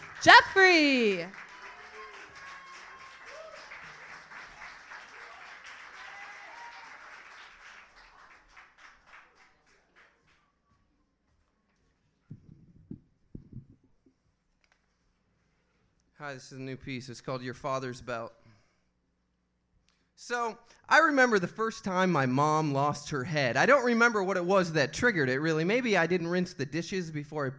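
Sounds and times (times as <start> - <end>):
audience clapping: 0.0 - 10.6
speech: 0.2 - 1.4, 16.2 - 18.4, 20.3 - 27.5.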